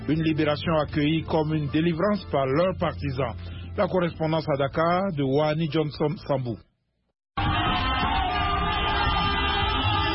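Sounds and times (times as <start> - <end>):
speech: 0.1 - 6.7
car horns honking: 7.4 - 10.1
people shouting with joy: 7.4 - 10.1.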